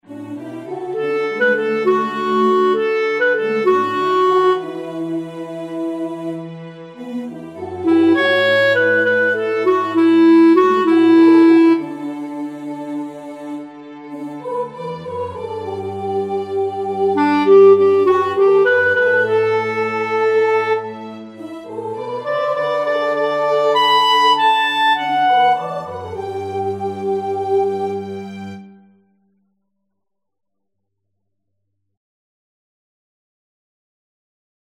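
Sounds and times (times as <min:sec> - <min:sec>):
clarinet: 0:00.1 - 0:29.2.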